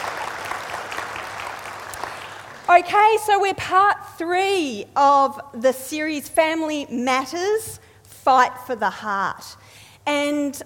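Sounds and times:
audience clapping: 0.0 - 2.7
speech: 2.7 - 10.6.

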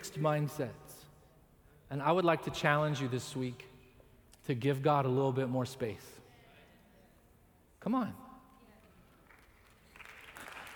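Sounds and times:
speech: 0.1 - 0.8, 1.9 - 3.7, 4.5 - 6.2, 7.8 - 8.2
audience clapping: 9.1 - 10.7.

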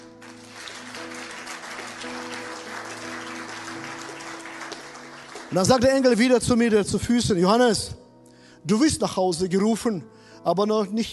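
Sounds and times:
crowd applause: 0.0 - 6.2
speech: 5.5 - 8.0, 8.6 - 11.1.

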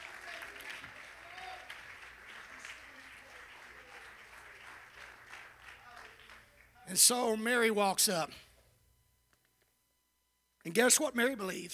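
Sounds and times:
audience clapping hands: 0.0 - 7.1
speech: 6.9 - 8.4, 10.6 - 11.7.

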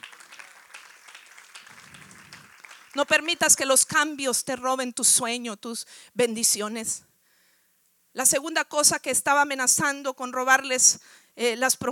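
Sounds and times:
audience applause: 0.0 - 3.6
speech: 2.9 - 7.1, 8.2 - 11.9.

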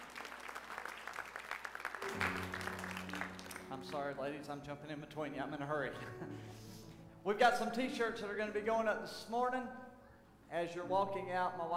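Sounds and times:
audience clapping hands in praise: 0.0 - 4.2
sustained organ-like chords: 2.0 - 11.7
speech: 3.7 - 9.8, 10.5 - 11.7.

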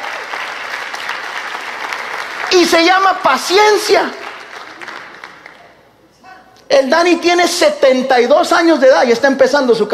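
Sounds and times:
audience applauding loudly: 0.0 - 5.8
speech: 2.6 - 4.2, 6.7 - 9.9.

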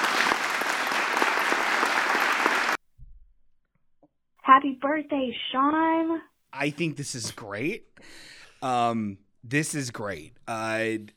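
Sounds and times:
applause sound effect: 0.0 - 2.8
speech: 4.6 - 11.1.

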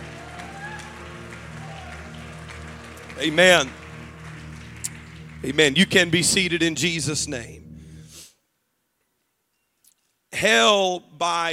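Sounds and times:
voices shouting praise: 0.0 - 3.8
audience clapping: 0.0 - 7.5
humming instrumental backdrop: 0.0 - 8.3
speech: 3.2 - 3.8, 5.4 - 7.6, 10.4 - 11.5.

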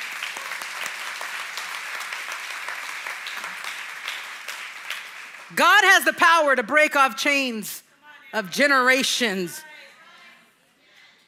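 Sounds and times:
audience applause: 0.0 - 5.6
speech: 5.5 - 9.7.

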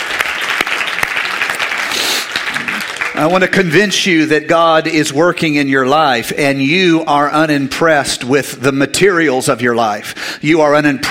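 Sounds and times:
audience applauding: 0.0 - 3.8
speech: 3.2 - 11.1.

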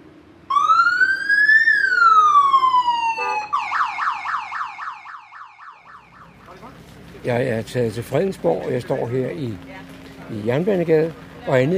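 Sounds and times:
fire engine siren wailing and yelping: 0.5 - 6.8
speech: 7.2 - 11.7.

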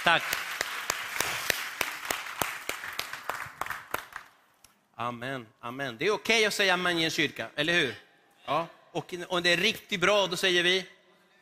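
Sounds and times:
speech: 0.0 - 0.5, 5.0 - 11.0
applause: 0.0 - 4.5.

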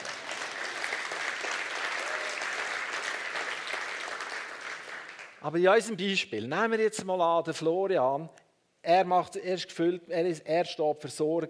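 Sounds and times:
audience applause: 0.0 - 5.4
speech: 5.4 - 11.4.

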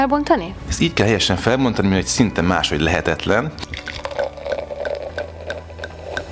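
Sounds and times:
speech: 0.0 - 3.8
sparkling wine fizzing as it's poured: 2.6 - 6.3.

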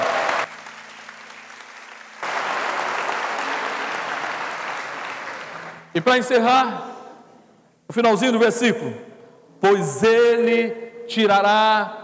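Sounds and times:
loud audience applause: 0.0 - 5.9
speech: 6.0 - 6.9, 7.9 - 12.0.

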